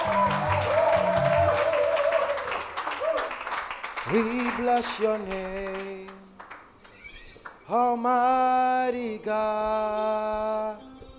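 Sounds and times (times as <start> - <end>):
people clapping: 0.0 - 7.8
speech: 4.1 - 6.0, 7.7 - 10.8.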